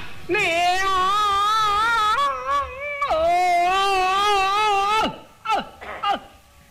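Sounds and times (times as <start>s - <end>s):
person imitating exaggerated Peking opera crying in the laosheng role: 0.3s - 6.6s.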